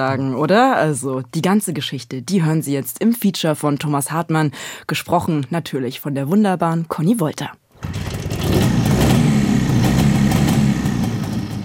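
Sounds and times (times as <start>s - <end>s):
speech: 0.0s - 8.0s
vintage motorcycle engine starting and idling: 7.8s - 11.6s.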